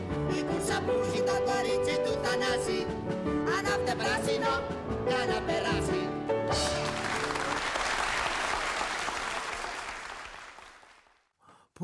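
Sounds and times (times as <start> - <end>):
speech: 0.8 - 6.0
group applauding: 6.5 - 11.3.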